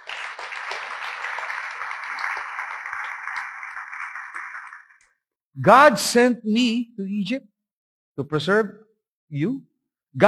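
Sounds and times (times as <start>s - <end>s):
congregation clapping during a church service: 0.0s - 5.2s
speech: 5.6s - 7.5s, 8.2s - 10.2s.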